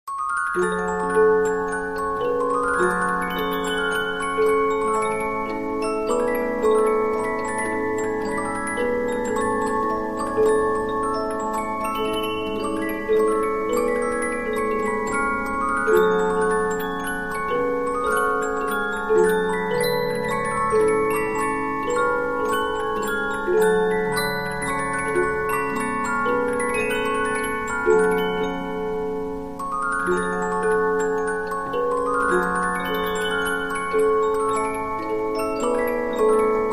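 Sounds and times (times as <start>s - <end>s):
Polyphon 15-inch disc music box playing: 0.1s - 36.7s.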